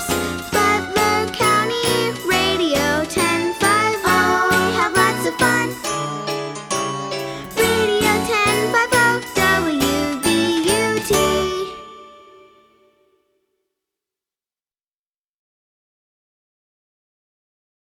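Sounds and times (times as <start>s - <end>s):
jingle: 0.0s - 13.4s.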